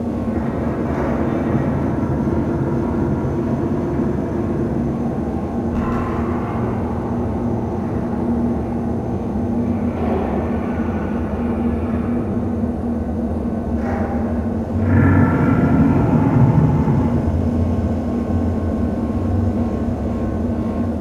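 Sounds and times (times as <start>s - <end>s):
galleon corridor ambience: 0.0s - 20.9s.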